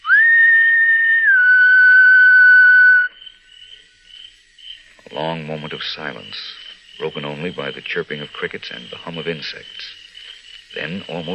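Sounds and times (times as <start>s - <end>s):
soft human whistle signal: 0.0s - 3.1s
speech: 5.2s - 10.0s, 10.7s - 11.3s.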